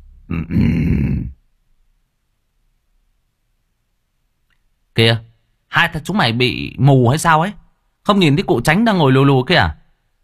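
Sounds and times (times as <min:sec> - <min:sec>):
speech: 0:00.3 - 0:01.0, 0:05.0 - 0:09.8
man clearing his throat: 0:00.3 - 0:01.4.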